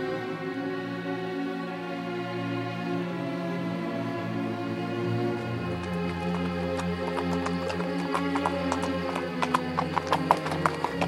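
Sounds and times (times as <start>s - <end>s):
steady sustained musical drone: 0.0s - 11.0s
horse hooves clip-clopping at walking pace: 5.1s - 11.0s.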